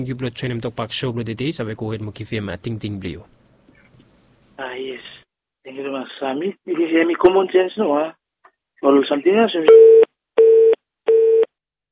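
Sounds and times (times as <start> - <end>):
speech: 0.0 - 3.4, 5.7 - 8.2, 8.8 - 10.0
telephone busy tone after a radio phone-in caller's line drops: 9.7 - 11.5.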